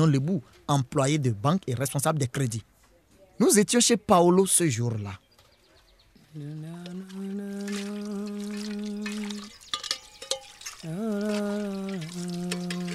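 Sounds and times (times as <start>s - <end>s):
speech: 0.0s - 2.7s, 3.4s - 5.2s, 6.3s - 8.2s
washing dishes with running water: 6.8s - 12.9s.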